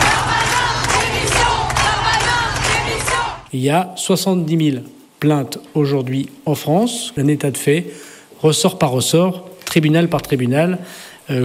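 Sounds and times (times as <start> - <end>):
crowd of protesters shouting demanding resignation: 0.0 - 3.5
speech: 3.6 - 11.4.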